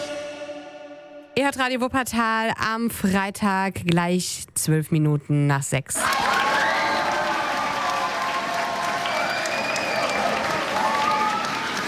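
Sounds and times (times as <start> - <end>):
speech: 1.4 - 6.3
students at the Wilhelm-Dörpfeld-Gymnasium applauding football world champion Chris Kramer: 6.0 - 11.8
students' high-pitched shouts and cheers: 6.0 - 11.8.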